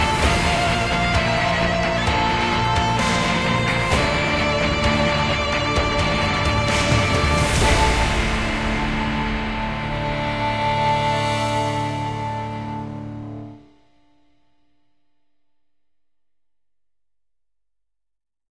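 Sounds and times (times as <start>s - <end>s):
fight music: 0.0s - 13.8s.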